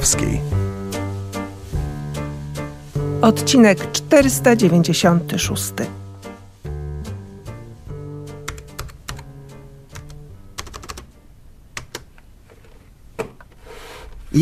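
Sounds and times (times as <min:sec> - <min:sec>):
speech: 0:00.0 - 0:00.6, 0:03.2 - 0:06.0
typing an email on a computer keyboard: 0:10.0 - 0:11.1, 0:11.8 - 0:12.1.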